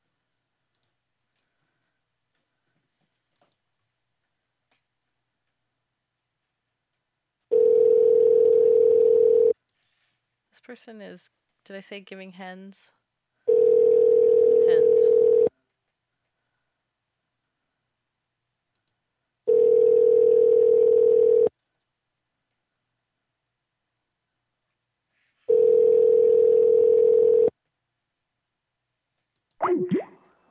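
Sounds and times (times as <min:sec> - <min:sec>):
phone ringback tones: 0:07.5 - 0:09.5, 0:13.5 - 0:15.5, 0:19.5 - 0:21.5, 0:25.5 - 0:27.5
speech: 0:10.7 - 0:13.0.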